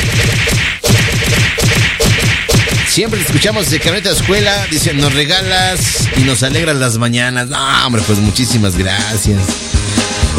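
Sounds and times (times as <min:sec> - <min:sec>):
knock-on-the-head smack sound effect: 0:00.0 - 0:06.7
speech: 0:03.0 - 0:10.0.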